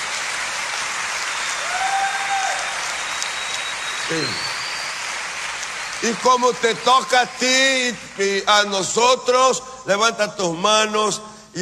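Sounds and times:
audience applauding: 0:00.0 - 0:09.0
speech: 0:04.1 - 0:04.5, 0:06.0 - 0:11.5.

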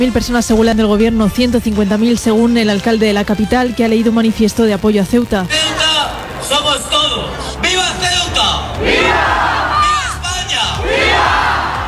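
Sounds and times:
speech: 0:00.0 - 0:05.8, 0:06.5 - 0:09.8
protest crowd shouting slogans: 0:08.4 - 0:11.8.

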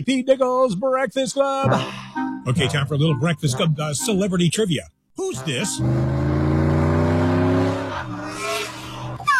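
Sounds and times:
speech: 0:00.0 - 0:06.2
speeding car engine revving: 0:05.6 - 0:09.3
sharp rising whines: 0:05.8 - 0:09.3.

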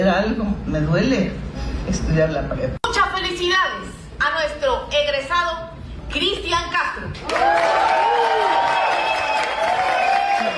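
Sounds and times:
speech: 0:00.2 - 0:02.8, 0:03.4 - 0:08.7
crowd applauding: 0:07.2 - 0:10.5.

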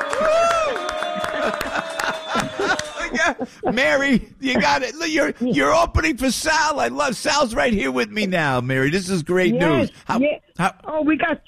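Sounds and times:
round of applause: 0:00.0 - 0:03.3
laughter: 0:00.0 - 0:05.8
speech: 0:03.3 - 0:11.4.

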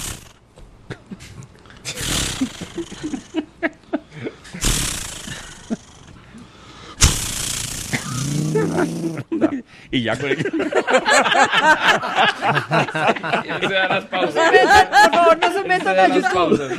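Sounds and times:
laughter: 0:00.9 - 0:04.6, 0:08.3 - 0:16.7
voice imitating a chainsaw starting and cutting: 0:01.9 - 0:03.3, 0:04.6 - 0:06.1, 0:07.0 - 0:09.3
speech: 0:09.9 - 0:16.7.

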